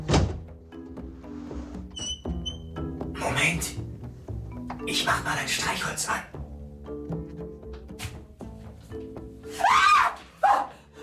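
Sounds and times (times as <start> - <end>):
speech: 3.4 - 3.8, 4.9 - 6.4
woman screaming: 9.5 - 10.8.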